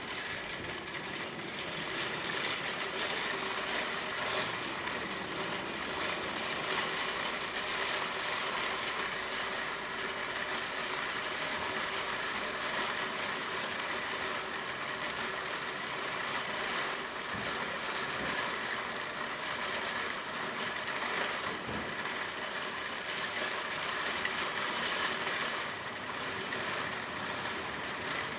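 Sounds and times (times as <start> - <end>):
supermarket shopping cart: 0.0 - 28.3.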